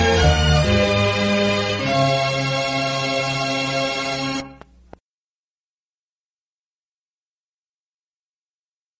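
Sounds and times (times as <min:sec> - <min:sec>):
celebratory instrumental music: 0:00.0 - 0:04.8.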